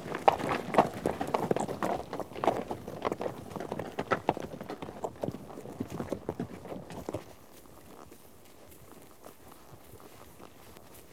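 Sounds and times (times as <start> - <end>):
horses' hooves clattering: 0.0 - 11.1.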